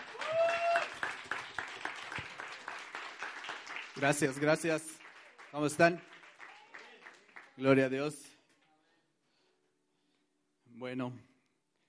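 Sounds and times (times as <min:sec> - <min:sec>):
crowd applauding: 0:00.0 - 0:07.9
high whistle or cheer: 0:00.1 - 0:01.0
speech: 0:04.0 - 0:06.1, 0:07.6 - 0:08.3, 0:10.9 - 0:11.3.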